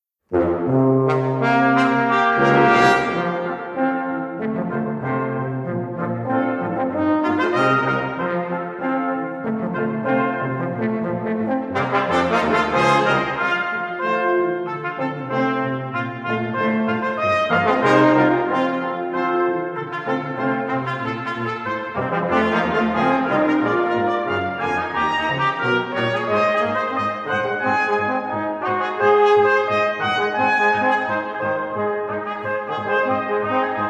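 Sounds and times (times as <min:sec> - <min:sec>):
lively concertino: 0:00.3 - 0:33.8.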